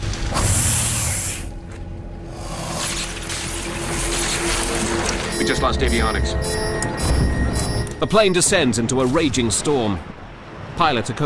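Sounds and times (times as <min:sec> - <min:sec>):
electrical wires sparking and short-circuiting: 0:00.0 - 0:01.6, 0:02.4 - 0:08.0
speech: 0:05.5 - 0:07.2, 0:08.0 - 0:10.2, 0:10.8 - 0:11.2.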